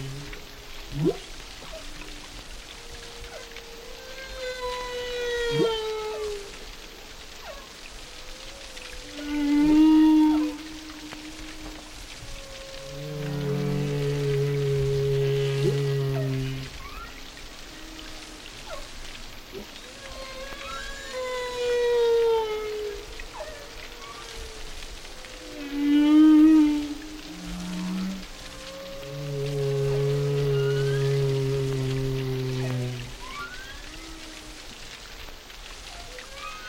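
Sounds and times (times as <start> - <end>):
faint steady hiss: 0.0 - 36.6
whale song: 0.0 - 36.6.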